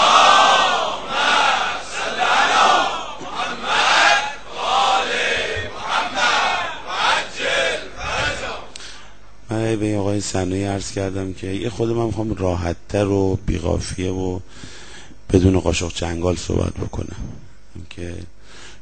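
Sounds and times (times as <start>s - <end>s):
large crowd chanting a religious salutation in unison: 0.0s - 8.7s
speech: 10.2s - 18.6s.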